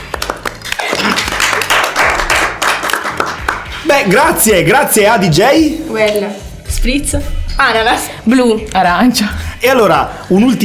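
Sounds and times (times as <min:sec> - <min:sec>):
applause: 0:00.0 - 0:03.8
speech: 0:03.9 - 0:10.6.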